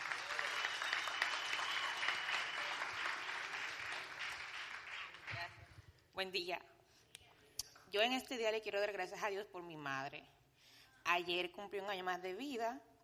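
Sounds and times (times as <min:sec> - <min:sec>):
audience applause: 0:00.0 - 0:05.5
speech: 0:06.2 - 0:06.7, 0:07.9 - 0:10.3, 0:11.1 - 0:12.9.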